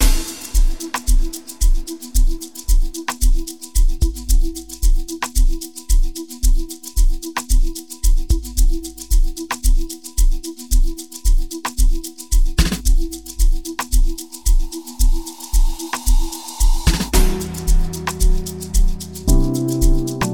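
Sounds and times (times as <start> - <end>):
lockdown music mix: 0.0 - 20.3.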